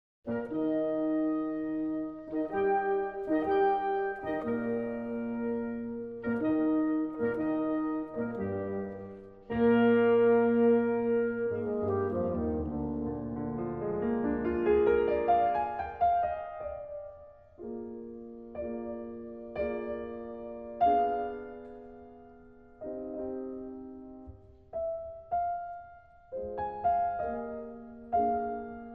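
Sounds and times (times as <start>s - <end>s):
classical quintet in E-flat major: 0.3s - 28.9s.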